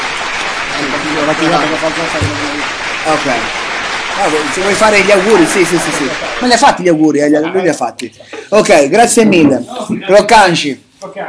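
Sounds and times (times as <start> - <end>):
applause: 0.0 - 7.1
speech: 1.0 - 3.6, 4.2 - 11.2.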